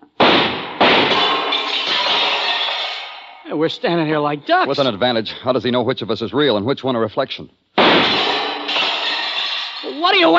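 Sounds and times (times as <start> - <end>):
gunshots: 0.2 - 3.2, 7.8 - 9.6
speech: 3.5 - 8.2, 10.0 - 10.3.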